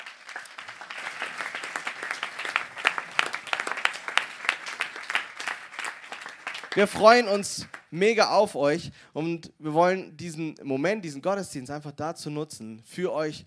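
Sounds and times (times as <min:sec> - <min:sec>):
church congregation applauding at the Panoramakirche in Göppingen: 0:00.0 - 0:08.0
speech: 0:06.8 - 0:13.4.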